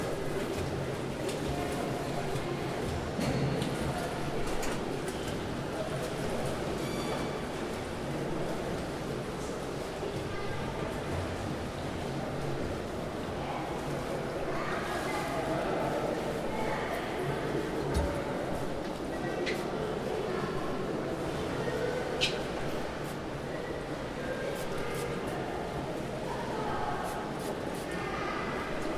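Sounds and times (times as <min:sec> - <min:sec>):
indoor swimming pool ambience: 0:00.0 - 0:28.9.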